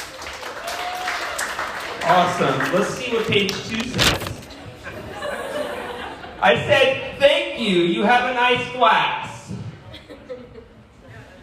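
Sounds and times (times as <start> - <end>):
audience clapping: 0.0 - 3.9
speech: 2.0 - 4.4, 6.4 - 9.3
laughter: 4.6 - 6.6, 9.8 - 11.4.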